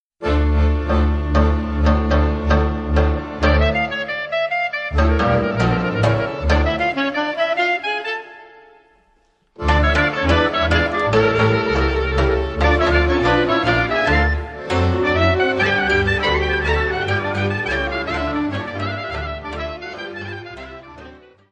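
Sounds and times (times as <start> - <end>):
Transylvanian orchestral suite: 0.2 - 21.5.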